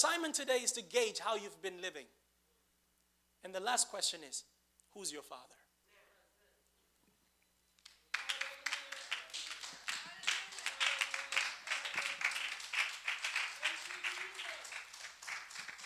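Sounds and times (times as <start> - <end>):
speech: 0.1 - 2.2, 3.4 - 5.6
audience clapping: 7.8 - 15.8.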